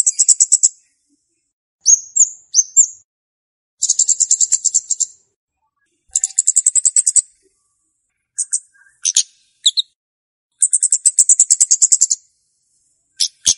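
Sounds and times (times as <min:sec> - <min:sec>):
flowerpecker lure song with very high ticking trills and chips: 0:00.0 - 0:00.8, 0:01.8 - 0:03.1, 0:03.8 - 0:05.3, 0:06.1 - 0:07.6, 0:08.4 - 0:12.4, 0:13.1 - 0:13.5.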